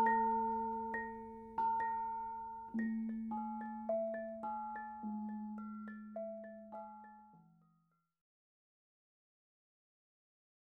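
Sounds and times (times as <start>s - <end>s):
bonang gamelan music: 0.0s - 7.8s.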